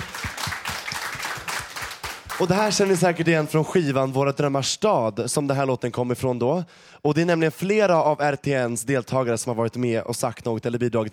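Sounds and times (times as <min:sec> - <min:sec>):
small group applauding in the studio: 0:00.0 - 0:03.4
speech: 0:02.4 - 0:11.1.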